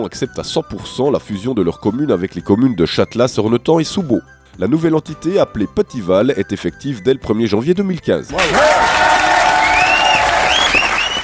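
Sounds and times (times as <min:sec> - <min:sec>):
speech: 0:00.0 - 0:09.0
audience applauding: 0:08.3 - 0:11.2.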